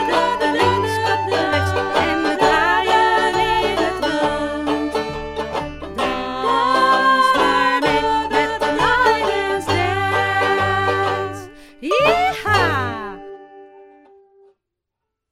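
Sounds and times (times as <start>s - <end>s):
line dance music with singing: 0.0s - 5.0s, 6.0s - 12.9s.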